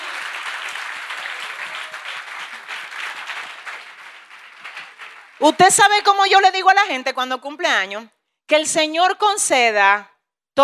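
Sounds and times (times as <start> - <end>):
audience applauding loudly: 0.0 - 6.2
speech: 5.4 - 10.6.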